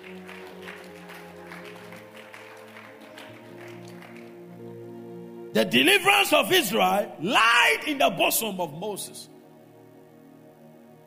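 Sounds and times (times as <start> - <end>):
audience clapping: 0.0 - 4.8
sustained keyboard or organ chords: 0.0 - 11.0
speech: 5.5 - 9.4.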